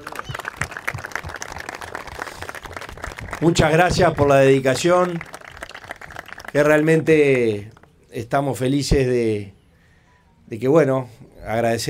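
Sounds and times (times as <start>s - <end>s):
group clapping for a service team at a gathering: 0.0s - 7.0s
speech: 3.4s - 5.3s, 6.5s - 9.6s, 10.5s - 11.8s.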